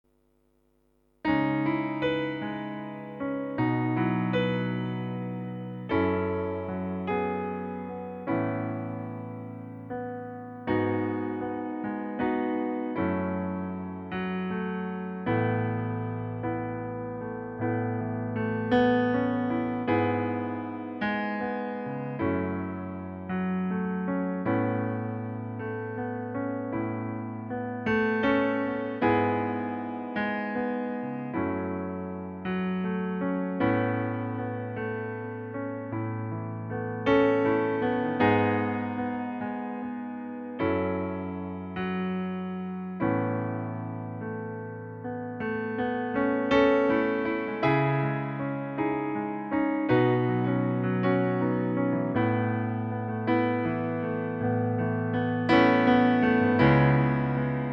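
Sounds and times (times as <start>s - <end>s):
piano playback: 1.2s - 57.7s.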